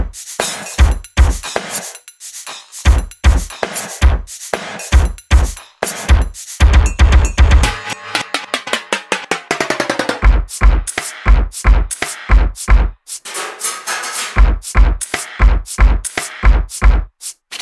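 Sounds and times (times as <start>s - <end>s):
kitchen drumkit mixed: 0.0s - 17.5s.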